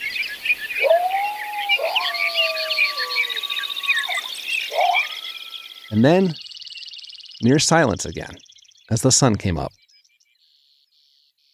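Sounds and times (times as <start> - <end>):
birds waking at dawn: 0.0 - 8.4
coyotes waking at dawn: 0.0 - 9.7
speech: 6.0 - 6.4, 7.4 - 9.8.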